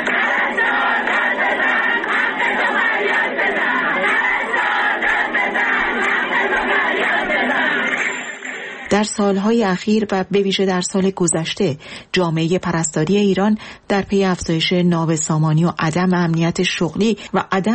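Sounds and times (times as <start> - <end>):
protesting nurses chanting slogans: 0.0 - 8.9
speech: 9.0 - 17.7.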